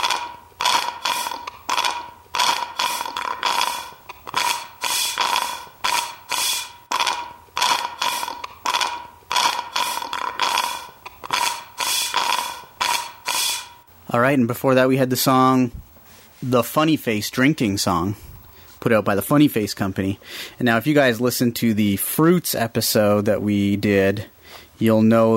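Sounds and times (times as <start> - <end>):
drum beat made from wet slurping sounds: 0.0 - 13.7
speech: 14.2 - 15.8, 16.4 - 18.2, 18.8 - 25.3.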